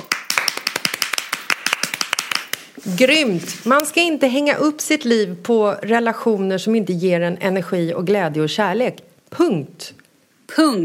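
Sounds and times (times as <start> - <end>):
applause from a small group: 0.0 - 2.7
speech: 2.8 - 10.8.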